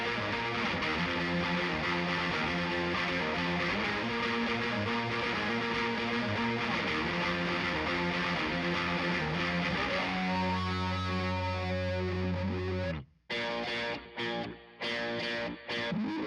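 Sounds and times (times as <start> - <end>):
guitars: 0.0 - 16.2.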